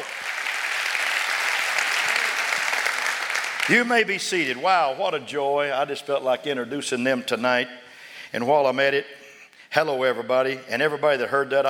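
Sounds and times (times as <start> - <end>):
audience applause: 0.0 - 4.3
speech: 3.7 - 11.6.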